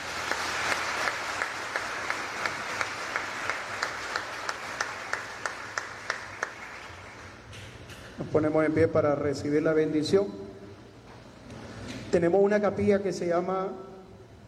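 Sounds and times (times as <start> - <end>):
audience applause: 0.0 - 7.4
speech: 8.3 - 10.4, 12.1 - 13.9.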